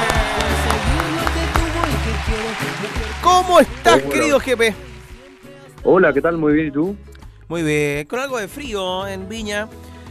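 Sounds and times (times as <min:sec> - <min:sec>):
applause: 0:00.0 - 0:05.8
speech: 0:03.4 - 0:04.9, 0:05.8 - 0:09.9.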